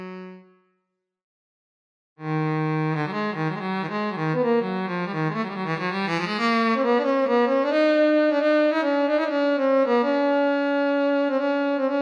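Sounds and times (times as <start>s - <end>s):
saxophone improvisation: 0.0s - 0.6s, 2.2s - 12.0s.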